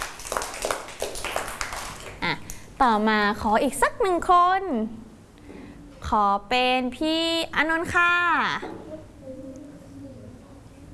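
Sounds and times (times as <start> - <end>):
audience clapping for a child: 0.0 - 2.2
speech: 2.8 - 5.0, 6.1 - 8.8.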